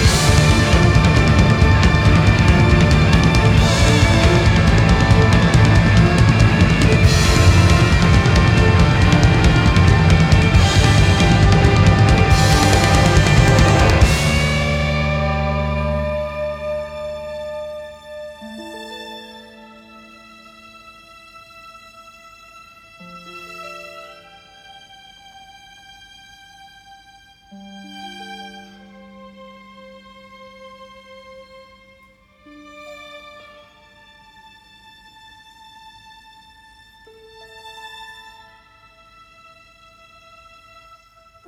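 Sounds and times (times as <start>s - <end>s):
orchestra playing live: 0.0s - 20.1s.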